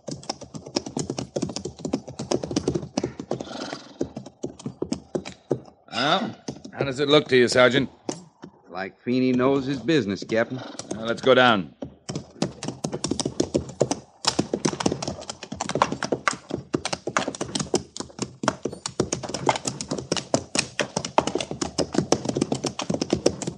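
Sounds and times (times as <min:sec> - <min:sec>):
horse hooves clip-clopping: 0:00.0 - 0:23.5
speech: 0:06.0 - 0:08.0, 0:08.8 - 0:11.8.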